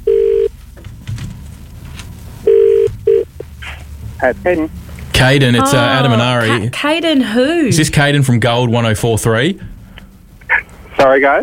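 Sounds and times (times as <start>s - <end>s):
phone ringback tone: 0.0s - 0.5s, 2.5s - 3.3s
speech: 4.2s - 9.7s, 11.0s - 11.4s.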